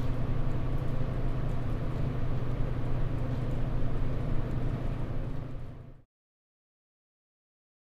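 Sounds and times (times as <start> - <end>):
room ambience: 0.0 - 6.1.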